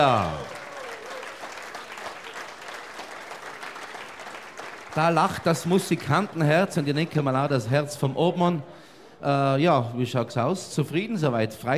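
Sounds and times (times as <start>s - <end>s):
speech: 0.0s - 0.6s, 5.0s - 11.7s
audience applause: 0.0s - 7.8s.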